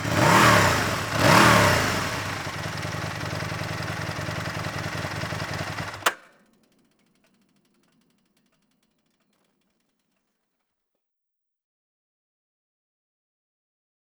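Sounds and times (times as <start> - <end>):
Aprilia RSV Mille motorcycle engine: 0.0 - 9.6.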